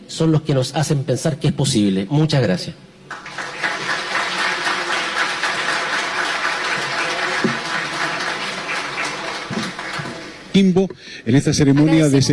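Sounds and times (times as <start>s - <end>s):
speech: 0.1s - 3.3s, 10.6s - 12.3s
ceremony audience applause: 3.1s - 10.6s.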